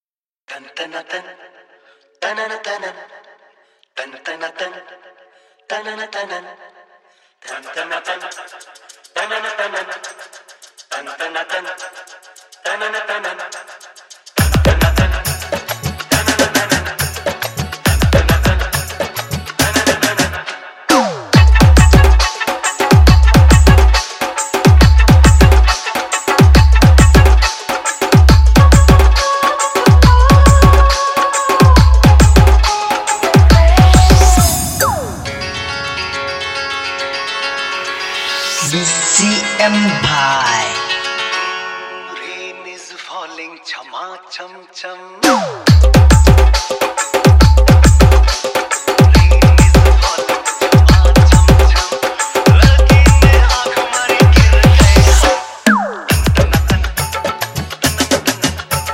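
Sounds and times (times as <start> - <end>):
Hindi tapori dance mix: 14.4 - 36.9, 37.8 - 40.9, 45.2 - 58.9.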